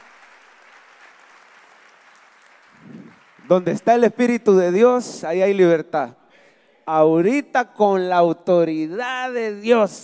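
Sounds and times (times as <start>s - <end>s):
audience applause: 0.0s - 3.7s
speech: 3.5s - 6.2s, 6.9s - 10.0s.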